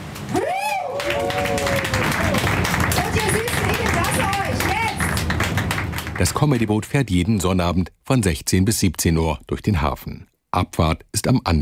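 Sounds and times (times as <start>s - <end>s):
crowd applause on a boat: 0.0s - 6.8s
whoops and cheering voices: 0.3s - 5.0s
speech: 6.2s - 11.6s.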